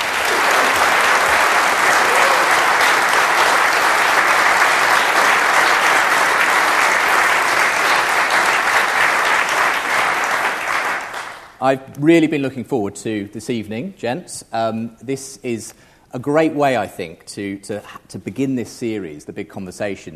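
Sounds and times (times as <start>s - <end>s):
audience applause: 0.0s - 11.6s
speech: 11.6s - 20.1s.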